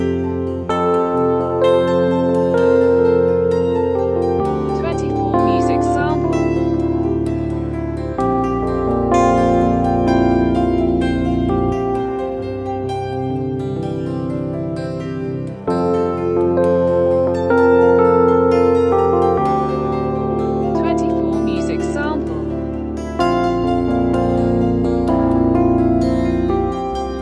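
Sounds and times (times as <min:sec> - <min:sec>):
electric piano samples: 0:00.0 - 0:27.2.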